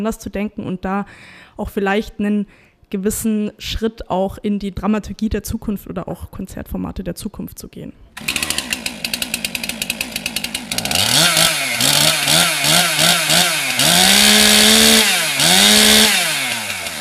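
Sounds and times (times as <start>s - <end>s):
speech: 0.0s - 8.6s
chainsaw carving a statue from a wooden log in Würzburg: 8.2s - 16.9s.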